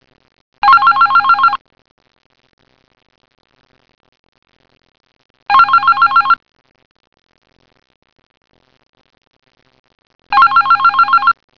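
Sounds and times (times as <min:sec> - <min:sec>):
telephone: 0:00.6 - 0:01.6, 0:05.5 - 0:06.4, 0:10.3 - 0:11.4.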